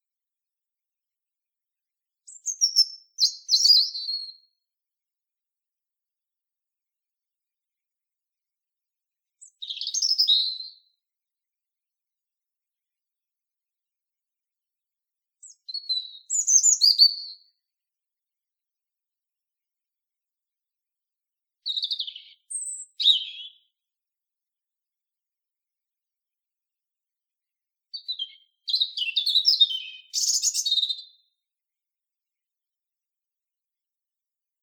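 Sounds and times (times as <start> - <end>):
European robin singing: 2.3 - 4.3, 9.4 - 10.7, 15.4 - 17.3, 21.6 - 23.7, 27.9 - 31.2.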